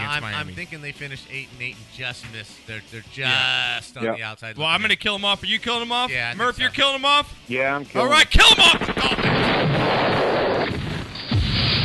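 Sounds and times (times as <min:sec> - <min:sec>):
speech: 0:00.2 - 0:10.9
bomb explosion: 0:08.7 - 0:11.8.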